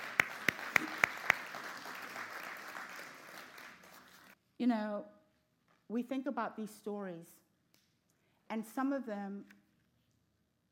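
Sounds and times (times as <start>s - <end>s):
audience sharp claps in steady rhythm: 0.0s - 4.4s
speech: 4.6s - 5.2s, 5.9s - 7.4s, 8.5s - 9.6s.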